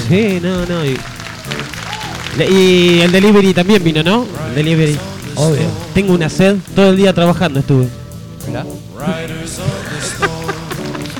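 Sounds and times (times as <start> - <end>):
audience applause: 0.0 - 6.0, 10.2 - 11.1
speech: 0.1 - 1.7, 2.4 - 10.2
laughter: 9.0 - 11.1.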